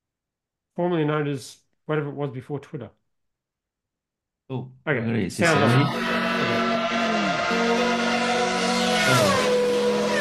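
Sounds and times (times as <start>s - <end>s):
speech: 0.8s - 3.0s, 4.5s - 6.2s
Formula One race car engines whining in an AI-generated video: 5.5s - 10.1s.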